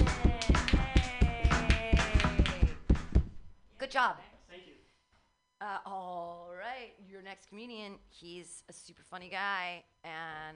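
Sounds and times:
crowd clapping hands in rhythm: 0.0s - 3.2s
speech: 3.9s - 4.7s, 5.6s - 10.5s.

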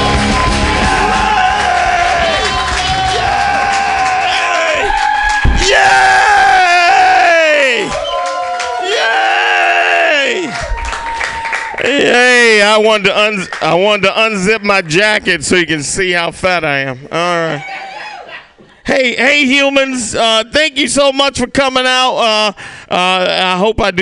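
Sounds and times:
audience applauding: 0.0s - 5.9s, 7.5s - 9.3s, 10.2s - 12.7s
audience cheering: 0.0s - 15.1s
speech: 12.7s - 17.9s, 18.9s - 23.9s.

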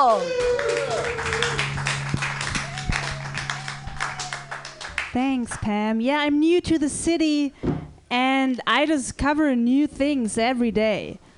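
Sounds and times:
speech: 0.0s - 0.6s, 5.2s - 11.2s
audience clapping for a comedian at a San Francisco comedy open mic: 0.0s - 5.7s
whistle-like tone: 0.9s - 5.2s.

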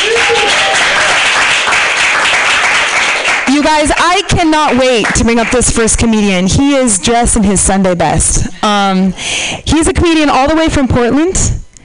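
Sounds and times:
audience applause: 0.0s - 5.6s
speech: 3.7s - 11.6s.

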